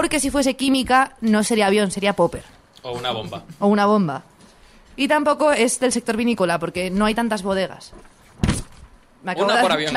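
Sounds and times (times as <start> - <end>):
speech: 0.0 - 4.3, 5.0 - 8.5, 9.2 - 9.9
microphone knocking against the speaker's body: 8.3 - 9.0.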